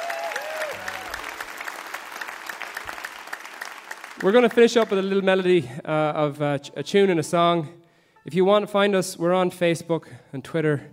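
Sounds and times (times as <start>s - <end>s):
crowd applauding: 0.0s - 5.2s
speech: 4.2s - 10.9s.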